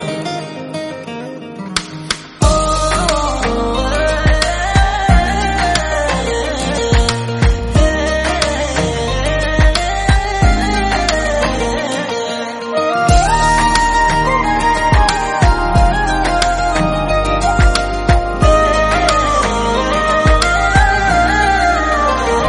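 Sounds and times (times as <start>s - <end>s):
instrumental background music: 0.0s - 22.4s.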